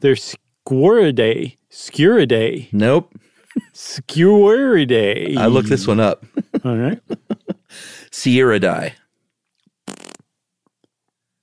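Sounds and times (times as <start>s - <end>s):
speech: 0.0s - 9.0s
laughter: 5.1s - 7.8s
raspberry blown with the lips: 5.3s - 6.1s, 9.8s - 10.2s.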